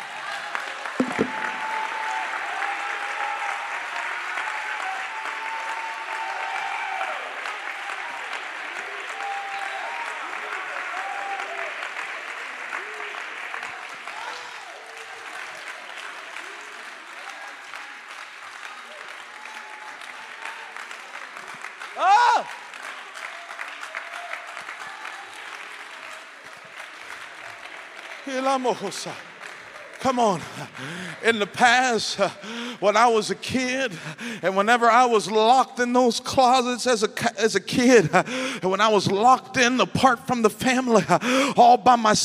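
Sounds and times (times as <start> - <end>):
audience clapping enthusiastically: 0.0 - 34.6
speech: 28.3 - 29.3, 30.0 - 42.2.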